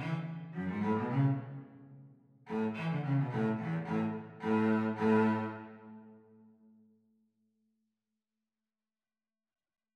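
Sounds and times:
cello playing the teacher part of a duet: 0:00.0 - 0:01.8, 0:02.5 - 0:06.1.

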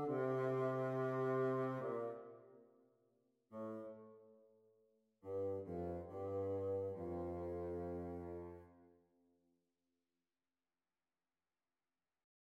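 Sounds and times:
bassoon duet: 0:00.0 - 0:02.3, 0:03.6 - 0:04.1, 0:05.2 - 0:08.7.

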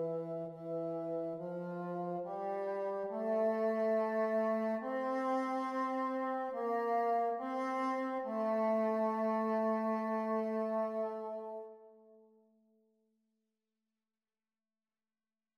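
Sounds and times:
bassoon duet speed practice: 0:00.0 - 0:11.8.

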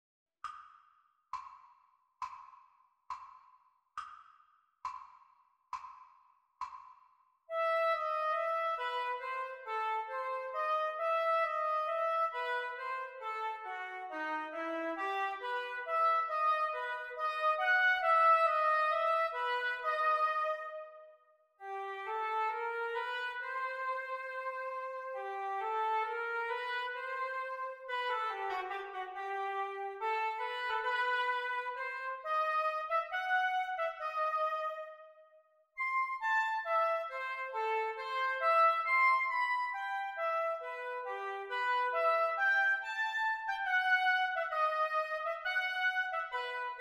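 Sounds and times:
oboe duet practice: 0:07.5 - 0:20.9, 0:21.6 - 0:35.1, 0:35.8 - 0:46.8.

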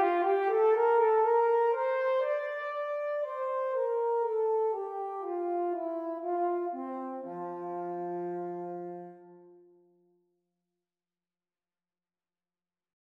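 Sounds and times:
French horn duet playalong practice: 0:00.0 - 0:09.8.

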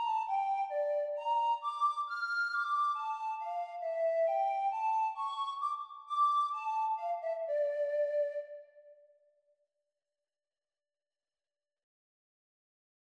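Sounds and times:
descant recorder practice: 0:00.0 - 0:08.2.

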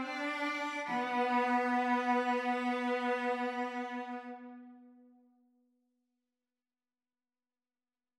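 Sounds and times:
cello duet: 0:00.0 - 0:04.9.

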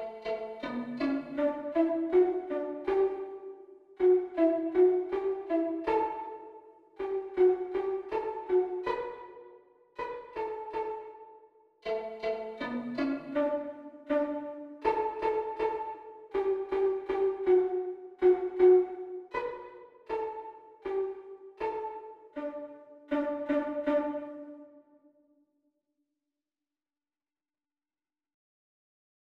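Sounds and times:
violin duet practice: 0:00.0 - 0:09.3, 0:10.0 - 0:11.2, 0:11.9 - 0:24.6.

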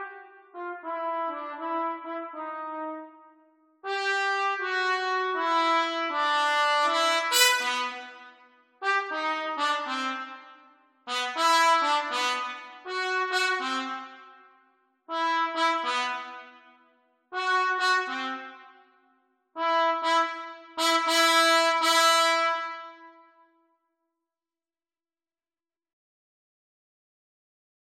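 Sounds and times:
trumpet duet: 0:00.0 - 0:03.2, 0:03.8 - 0:14.3, 0:15.1 - 0:18.8, 0:19.6 - 0:23.4.

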